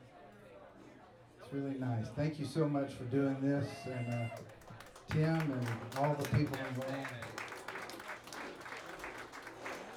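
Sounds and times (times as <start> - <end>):
speech: 1.5 - 7.4
audience clapping: 4.1 - 9.9.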